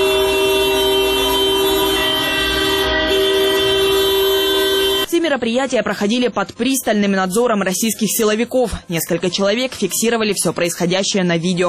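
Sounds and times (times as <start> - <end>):
car horns honking in solidarity: 0.0 - 5.1
speech: 5.4 - 11.6.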